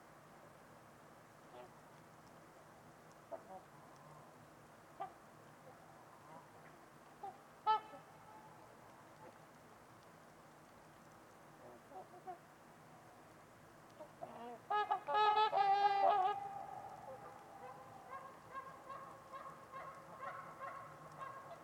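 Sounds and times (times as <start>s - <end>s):
quiet steady hiss: 0.0s - 21.6s
trumpeter swans honking: 7.2s - 8.6s, 14.0s - 21.6s.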